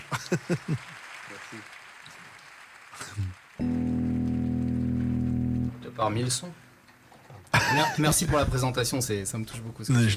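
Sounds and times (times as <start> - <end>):
audience applause: 0.0 - 5.2
speech: 0.1 - 1.8, 6.0 - 6.6, 7.7 - 10.1.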